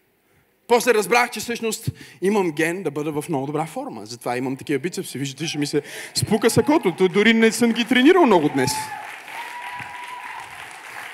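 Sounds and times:
speech: 0.7s - 9.0s
audience applause: 5.5s - 11.1s.

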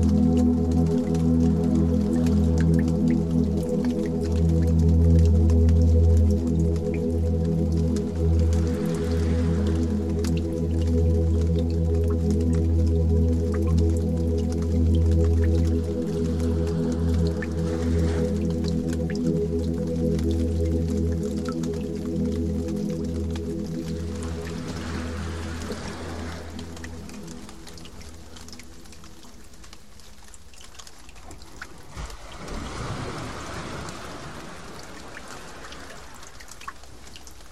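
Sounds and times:
loud low humming drone of stacked steady tones: 0.0s - 29.8s
water droplets falling in a resonant space: 0.0s - 37.5s.

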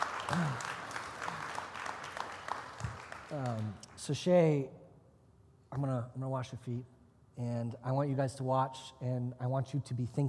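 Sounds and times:
round of applause: 0.0s - 3.8s
speech: 0.3s - 0.7s, 3.3s - 4.8s, 5.7s - 10.2s.

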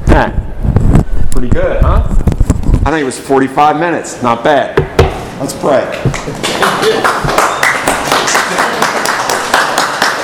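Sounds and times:
speech: 0.2s - 0.4s, 1.4s - 2.1s, 2.8s - 7.3s
audience applause: 6.4s - 10.2s.

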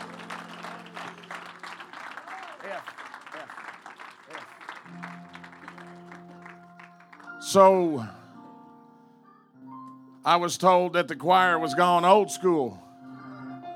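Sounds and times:
audience hand clapping: 0.0s - 7.5s
speech: 7.5s - 8.2s, 10.3s - 12.8s.

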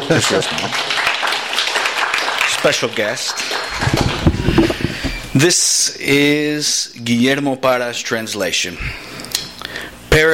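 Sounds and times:
audience applause: 0.0s - 5.2s
speech: 0.1s - 1.0s, 2.6s - 9.2s, 10.1s - 10.3s.

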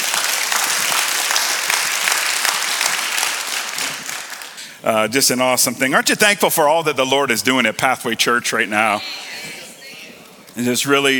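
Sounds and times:
audience applauding: 0.0s - 4.8s
speech: 4.8s - 9.3s, 10.6s - 11.1s.

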